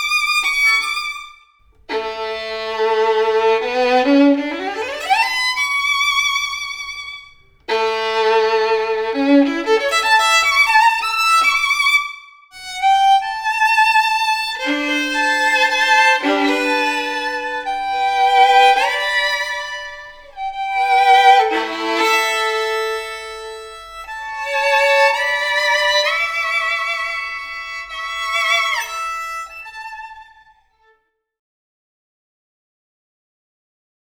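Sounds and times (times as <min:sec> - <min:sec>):
violin solo: 0:00.0 - 0:31.0.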